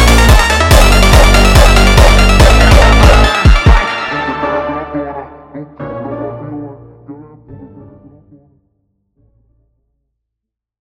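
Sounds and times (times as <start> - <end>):
sped-up jumpstyle music: 0.0 - 4.9.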